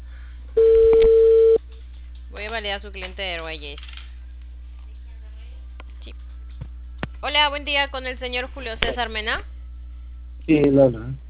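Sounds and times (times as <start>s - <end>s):
telephone ringing tone on a call: 0.6s - 1.6s
speech: 2.6s - 4.0s, 7.2s - 9.5s, 10.5s - 11.2s.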